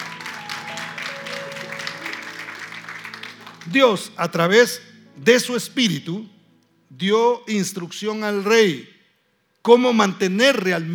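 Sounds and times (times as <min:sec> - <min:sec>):
audience applause: 0:00.0 - 0:03.8
speech: 0:03.6 - 0:08.9, 0:09.6 - 0:10.9.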